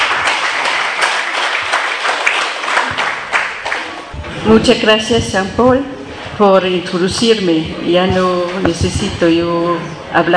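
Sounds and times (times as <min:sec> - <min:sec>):
audience applause: 0:00.0 - 0:04.2
speech: 0:04.4 - 0:10.3.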